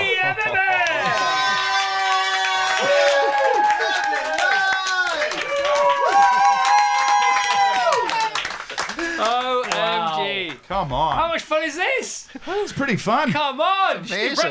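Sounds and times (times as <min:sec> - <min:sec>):
crowd clapping and cheering: 0:00.1 - 0:11.1
speech: 0:10.8 - 0:14.4.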